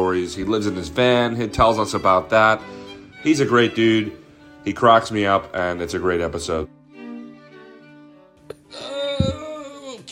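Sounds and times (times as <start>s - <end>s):
speech: 0.0s - 6.7s
person yawning: 8.5s - 10.1s.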